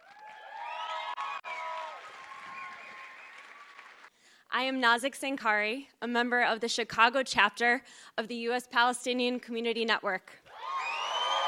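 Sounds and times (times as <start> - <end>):
voices cheering and whooping: 0.0 - 3.7, 10.5 - 11.4
audience applause: 0.0 - 4.1, 10.8 - 11.4
speech: 4.6 - 10.4.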